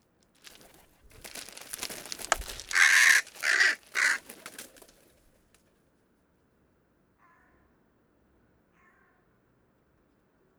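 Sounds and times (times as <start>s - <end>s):
hooded crow Corvus cornix cornix calling: 1.2s - 4.7s.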